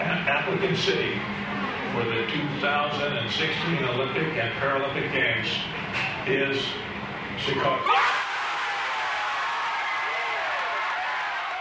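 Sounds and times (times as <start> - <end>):
speech: 0.5 - 8.2
crowd cheering: 7.8 - 11.5.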